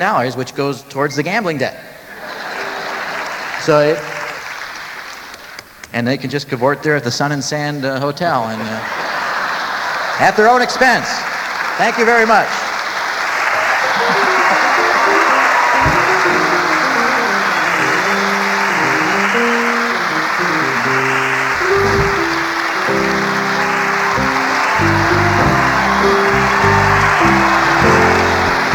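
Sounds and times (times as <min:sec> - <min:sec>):
speech: 0:00.0 - 0:01.9, 0:03.6 - 0:04.2, 0:05.9 - 0:09.0, 0:10.2 - 0:12.7
laughter: 0:02.1 - 0:04.4, 0:08.4 - 0:28.7
audience applause: 0:02.1 - 0:05.7, 0:08.7 - 0:28.7
music with shifting notes: 0:13.8 - 0:28.7.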